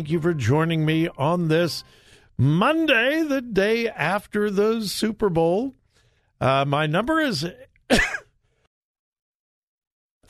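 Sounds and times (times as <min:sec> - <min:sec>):
speech: 0:00.0 - 0:05.8, 0:06.4 - 0:08.1
person coughing: 0:07.9 - 0:08.4.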